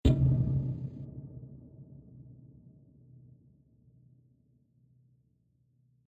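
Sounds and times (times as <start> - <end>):
single dramatic impact hit: 0.0 - 1.6.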